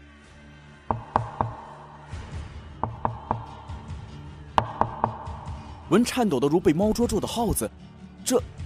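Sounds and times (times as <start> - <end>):
knocking on a door: 0.9 - 1.8, 2.8 - 3.6, 4.6 - 5.6
speech: 5.9 - 8.6.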